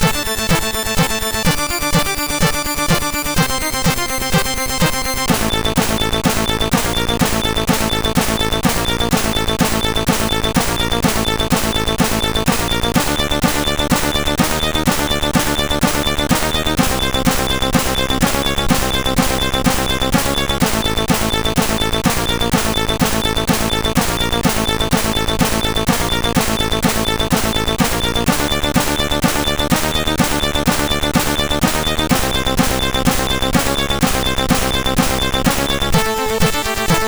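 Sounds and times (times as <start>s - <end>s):
techno SID music on MOS6581R4 chip: 0.0s - 37.0s.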